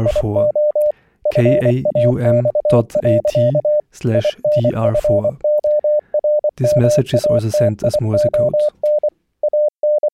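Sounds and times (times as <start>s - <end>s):
speech: 0.0s - 0.6s, 1.3s - 5.4s, 6.6s - 8.9s
radio fax digital picture transmission tones: 0.0s - 9.1s.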